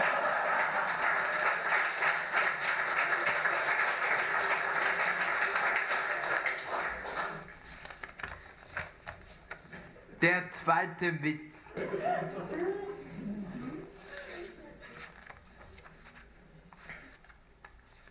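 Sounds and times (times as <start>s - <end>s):
laughter: 0.0s - 1.6s, 11.7s - 15.2s
audience clapping: 0.0s - 7.8s
speech: 10.2s - 13.4s.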